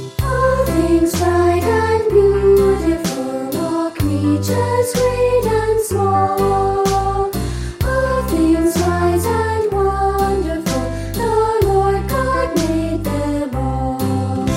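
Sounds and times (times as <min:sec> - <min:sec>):
children's choir singing: 0:00.2 - 0:14.4.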